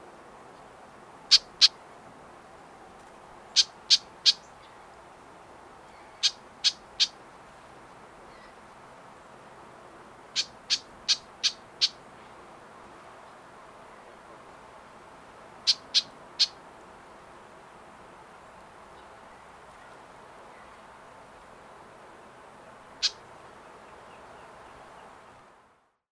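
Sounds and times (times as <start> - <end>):
White-eyed Vireo Vireo griseus singing: 1.3 - 1.8, 3.5 - 4.9, 5.8 - 7.2, 10.4 - 12.0, 15.6 - 16.6, 23.0 - 25.2.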